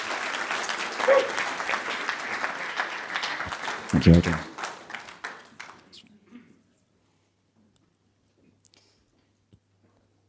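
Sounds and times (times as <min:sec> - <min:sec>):
church congregation at The Beacon Church applauding a speaker: 0:00.0 - 0:06.0
speech: 0:01.1 - 0:02.0, 0:03.9 - 0:04.5.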